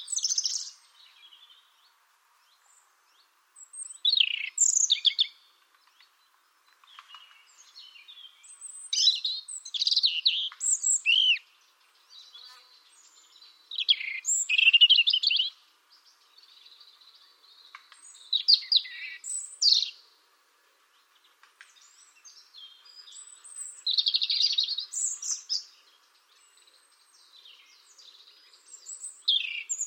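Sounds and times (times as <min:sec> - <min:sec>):
European robin song: 0:00.0 - 0:01.4, 0:03.6 - 0:05.4, 0:08.4 - 0:11.5, 0:13.5 - 0:15.6, 0:18.0 - 0:20.0, 0:22.0 - 0:25.8, 0:27.5 - 0:29.8.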